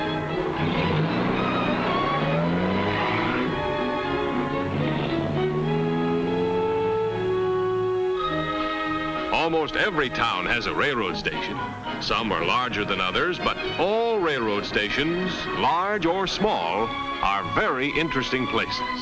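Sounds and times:
tire squeal: 0:00.0 - 0:09.2
taxi cab engine accelerating as it drives off: 0:00.0 - 0:09.5
road noise: 0:00.0 - 0:19.0
speech: 0:09.5 - 0:19.0.

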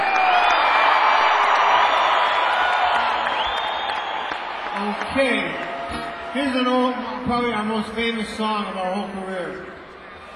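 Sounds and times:
audience yelling and cheering: 0:00.0 - 0:07.8
speech: 0:05.2 - 0:05.7, 0:06.4 - 0:09.8.

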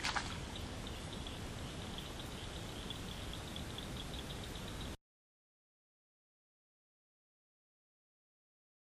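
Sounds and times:
bullfrog croaking at Collins Pond: 0:00.0 - 0:05.0.

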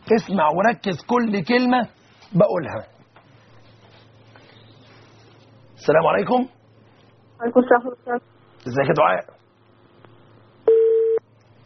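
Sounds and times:
speech: 0:00.1 - 0:03.0, 0:05.8 - 0:06.6, 0:07.4 - 0:09.4
electronic telephone tone as a phone call drops: 0:10.7 - 0:11.2.

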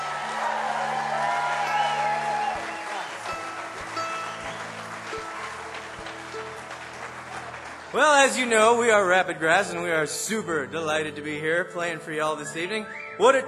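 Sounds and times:
audience applause: 0:00.0 - 0:09.4
speech: 0:08.0 - 0:13.4.

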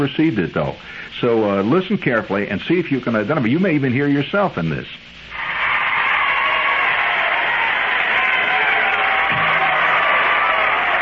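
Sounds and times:
speech: 0:00.0 - 0:05.2
large crowd cheering and shouting: 0:05.3 - 0:10.9.

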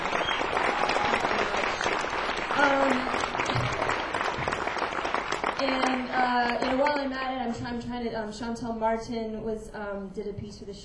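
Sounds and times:
cheer: 0:00.0 - 0:06.1
audience applause: 0:00.0 - 0:07.2
speech: 0:06.4 - 0:10.8.

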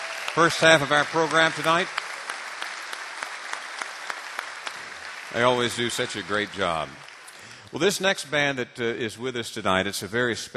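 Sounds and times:
audience applause in a concert hall at a bluegrass music program: 0:00.0 - 0:08.0
speech: 0:00.4 - 0:02.0, 0:05.3 - 0:07.0, 0:07.7 - 0:10.5.

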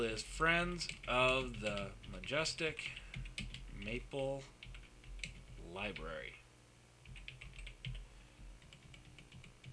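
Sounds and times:
speech: 0:00.0 - 0:03.1, 0:03.8 - 0:04.6, 0:05.6 - 0:06.4
typing on a computer keyboard: 0:00.8 - 0:03.7, 0:04.6 - 0:06.1, 0:07.1 - 0:08.0, 0:08.6 - 0:09.7.

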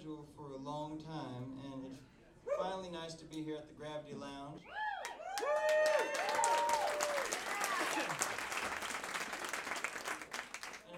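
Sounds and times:
speech: 0:00.0 - 0:06.7
audience whoops and whistles: 0:04.6 - 0:07.2
audience applause: 0:05.0 - 0:10.9.

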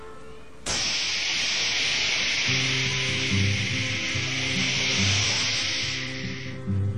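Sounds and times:
Greyhound bus air brakes hissing: 0:00.6 - 0:06.8.

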